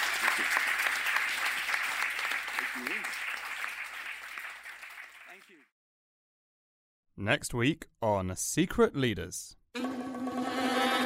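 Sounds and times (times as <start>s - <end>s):
audience round of applause: 0.0s - 5.7s
speech: 7.2s - 9.9s.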